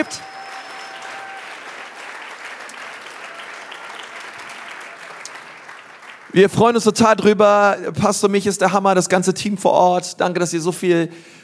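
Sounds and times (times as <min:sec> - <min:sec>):
speech: 0:00.0 - 0:00.3, 0:06.3 - 0:11.4
audience applauding: 0:00.0 - 0:06.8.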